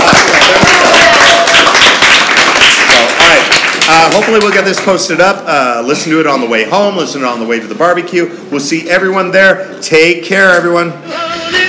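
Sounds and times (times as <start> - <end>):
crowd applauding contest winner: 0.0 - 4.9
speech: 4.2 - 11.4.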